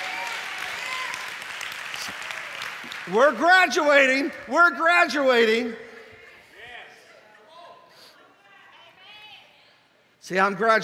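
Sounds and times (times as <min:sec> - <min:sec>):
audience hand clapping: 0:00.0 - 0:04.7
speech: 0:03.1 - 0:05.8, 0:10.3 - 0:10.8.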